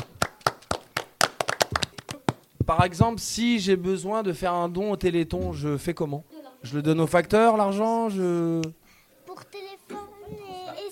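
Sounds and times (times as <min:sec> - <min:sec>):
hand clapping at a children's Téléthon charity event: 0:00.0 - 0:02.5
speech: 0:02.7 - 0:08.8.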